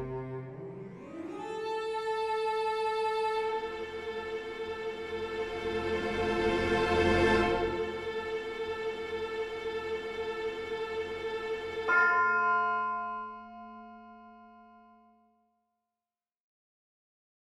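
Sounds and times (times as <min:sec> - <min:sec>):
cello: 0:00.0 - 0:12.0
strings: 0:00.0 - 0:14.8
bells: 0:11.3 - 0:15.3.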